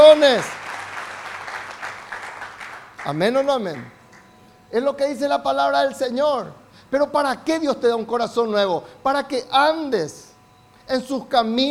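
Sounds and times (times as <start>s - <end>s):
audience applauding: 0.0s - 3.9s
speech: 0.1s - 0.6s, 3.0s - 4.0s, 4.7s - 10.2s, 10.9s - 11.6s.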